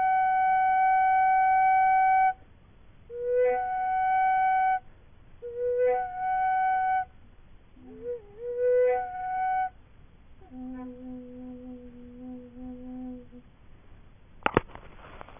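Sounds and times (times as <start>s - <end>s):
overtone flute: 0.0s - 2.4s, 3.1s - 7.2s, 7.8s - 9.8s, 10.4s - 13.5s.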